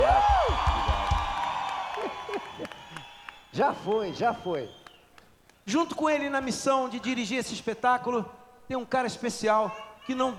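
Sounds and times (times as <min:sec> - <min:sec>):
audience applause: 0:00.0 - 0:05.0
speech: 0:03.6 - 0:04.8, 0:05.7 - 0:10.3.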